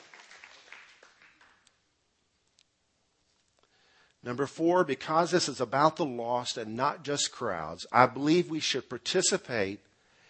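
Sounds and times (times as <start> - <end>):
faint crowd applause: 0.0 - 1.6
speech: 4.2 - 9.9.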